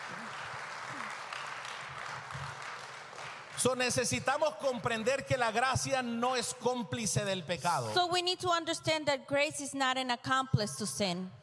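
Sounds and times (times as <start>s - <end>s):
audience applause: 0.0s - 4.0s
speech: 3.6s - 11.4s.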